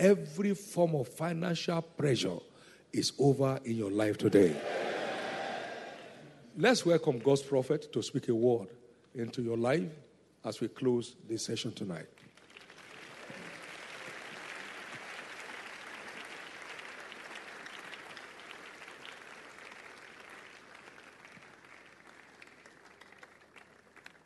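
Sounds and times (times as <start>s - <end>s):
speech: 0.0s - 5.0s, 6.6s - 12.2s
church congregation applauding at a closing worship service: 4.4s - 6.3s, 12.2s - 24.2s.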